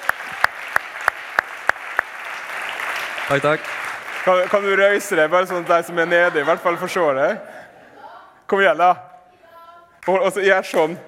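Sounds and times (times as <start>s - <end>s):
sharp evenly spaced claps: 0.0s - 5.0s
audience applause: 0.0s - 6.6s
speech: 3.3s - 7.6s, 8.5s - 9.1s, 10.1s - 11.0s
laughter: 5.4s - 8.1s.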